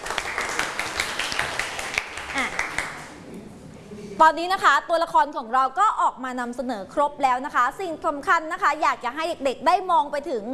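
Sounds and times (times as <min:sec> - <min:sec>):
students clapping in a classroom: 0:00.0 - 0:03.2
speech: 0:04.2 - 0:10.5.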